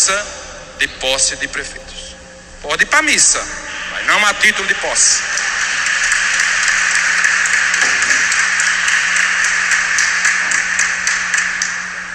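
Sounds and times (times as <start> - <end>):
speech: 0.0 - 1.9, 2.6 - 5.4
audience applause: 3.7 - 12.1.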